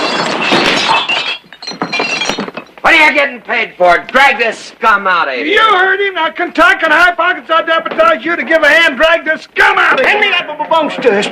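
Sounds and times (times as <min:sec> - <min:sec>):
glasses shattering as a gun slides into them: 0:00.0 - 0:02.8
scattered tinkling glass pieces: 0:00.0 - 0:02.8
speech: 0:03.1 - 0:11.2.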